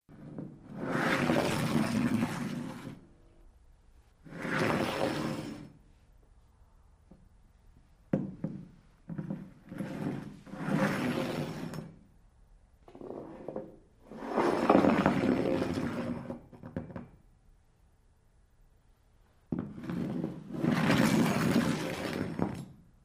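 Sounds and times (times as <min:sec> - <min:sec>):
glass beer mug scraping and sliding over surface: 0:00.1 - 0:03.0, 0:04.2 - 0:05.8, 0:09.2 - 0:12.0, 0:13.0 - 0:16.5, 0:19.6 - 0:22.7.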